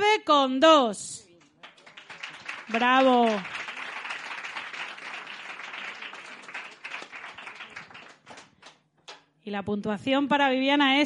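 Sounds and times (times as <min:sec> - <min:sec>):
speech: 0:00.0 - 0:01.2, 0:02.7 - 0:03.5, 0:09.5 - 0:11.0
loud audience applause: 0:01.4 - 0:08.8.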